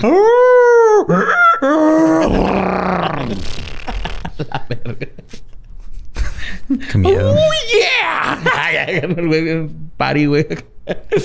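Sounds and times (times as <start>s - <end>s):
speech: 0.0s - 0.4s, 4.7s - 5.4s, 6.9s - 11.2s
person imitating beast cry mixing bark bray and neigh: 0.0s - 3.8s, 6.9s - 8.6s
laughter: 1.1s - 5.5s, 6.1s - 9.3s.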